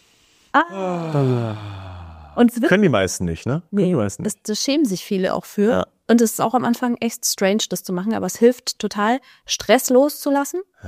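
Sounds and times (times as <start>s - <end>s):
speech: 0.6s - 1.8s, 2.4s - 10.8s
loud voiced exhalation to release stress: 0.6s - 2.4s.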